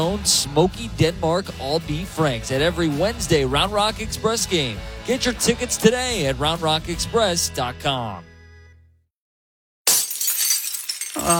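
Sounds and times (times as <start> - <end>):
speech: 0.0 - 8.3
windshield glass cracking sound effect in an auto glass ad: 9.9 - 11.3.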